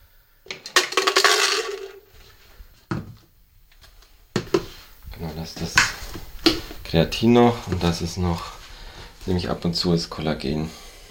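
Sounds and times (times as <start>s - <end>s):
containers and utensils clattering while mixing protein powder and supplements: 0.5s - 2.3s
speech: 5.4s - 6.0s, 6.9s - 8.6s, 9.3s - 10.8s.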